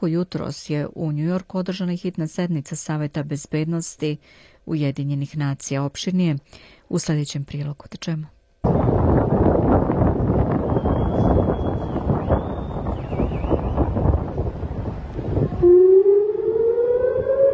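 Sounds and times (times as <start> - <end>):
speech: 0.0 - 10.0
blustery wind noise: 8.6 - 17.5
air-raid sirens wailing across Israeli cities on a Saturday evening: 15.3 - 17.5.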